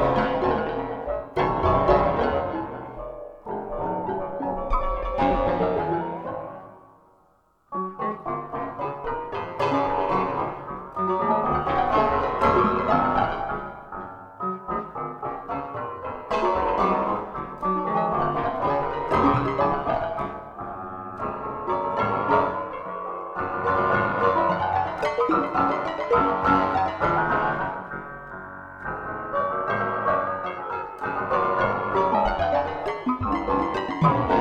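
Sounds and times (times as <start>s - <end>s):
fortepiano: 0.0s - 34.3s.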